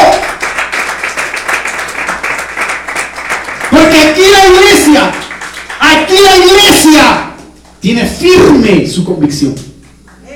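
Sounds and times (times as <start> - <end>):
audience clapping: 0.0 - 8.1, 9.8 - 10.3
speech: 6.2 - 9.7.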